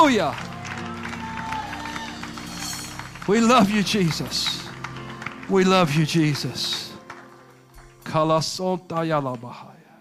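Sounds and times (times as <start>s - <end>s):
speech: 0.0s - 0.5s, 3.2s - 4.6s, 5.5s - 6.9s, 8.0s - 9.7s
audience clapping: 0.0s - 9.6s
audience shouting: 0.4s - 2.8s.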